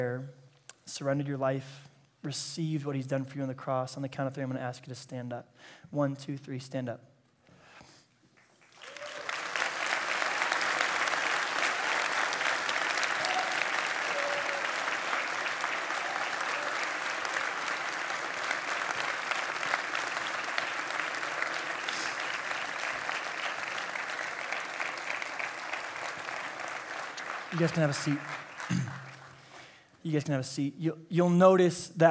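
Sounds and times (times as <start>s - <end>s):
speech: 0.0s - 7.1s, 27.6s - 29.0s, 30.0s - 32.0s
people clapping: 8.3s - 29.7s.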